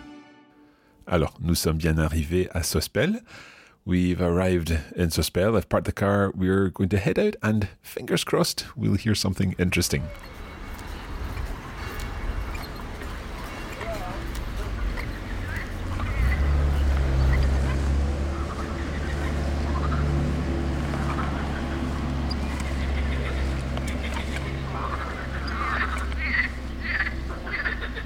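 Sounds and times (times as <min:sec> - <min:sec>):
speech: 0:01.1 - 0:10.4
morning chorus of frogs chirping on the river Bévéra: 0:10.0 - 0:28.0.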